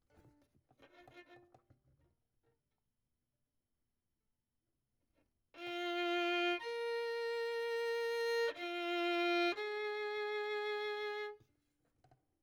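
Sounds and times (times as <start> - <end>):
violin: 0.1 - 2.0, 5.6 - 11.4.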